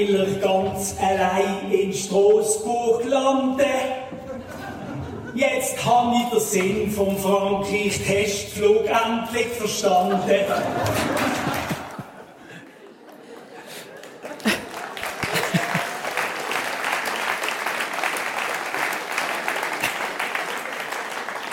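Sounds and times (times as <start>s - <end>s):
speech: 0.0s - 4.6s, 5.4s - 11.5s
audience laughter in Bern: 4.1s - 5.4s, 10.0s - 16.4s
audience applause in Bern: 10.8s - 21.5s.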